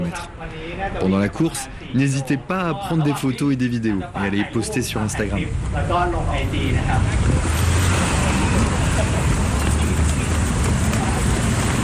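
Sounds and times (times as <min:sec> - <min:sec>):
traffic beside a canal in Ek Mai, central Bangkok: 0:00.0 - 0:11.8
speech: 0:00.1 - 0:07.7
wind noise beside a canal in Ek Mai, central Bangkok: 0:06.5 - 0:11.8.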